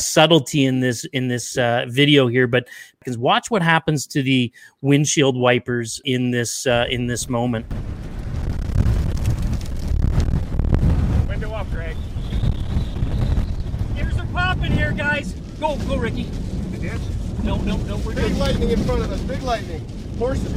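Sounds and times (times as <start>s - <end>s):
speech: 0.0s - 8.0s, 14.6s - 20.5s
strong storm wind roaring: 6.7s - 20.5s.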